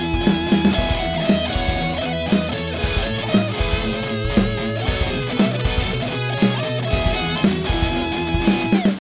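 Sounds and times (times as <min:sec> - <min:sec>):
lead guitar tone through vintage 4x12 cabinet: 0:00.0 - 0:09.0.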